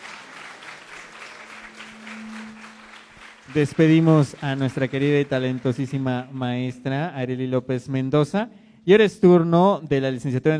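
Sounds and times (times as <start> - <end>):
crowd applauding: 0.0 - 7.1
speech: 3.5 - 10.5.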